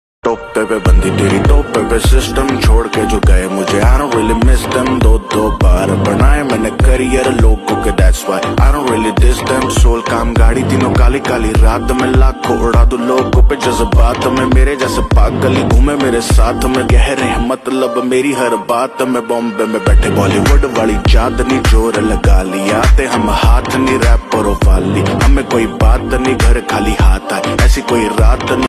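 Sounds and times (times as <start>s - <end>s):
Hindi rap ringtone: 0.2s - 28.6s.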